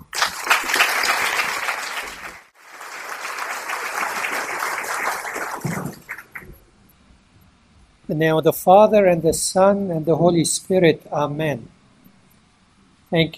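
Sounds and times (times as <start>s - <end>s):
audience clapping: 0.0s - 6.6s
speech: 8.1s - 11.8s, 13.1s - 13.3s.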